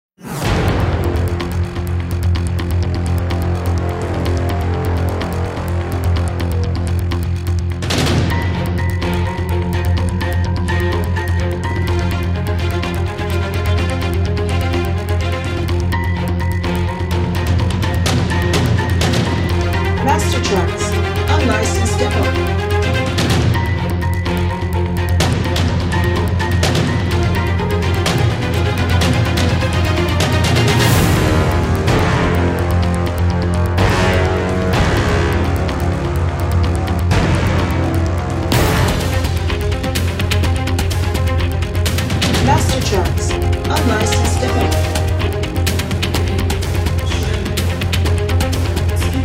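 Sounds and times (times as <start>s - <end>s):
suspenseful action music: 0.2s - 49.2s.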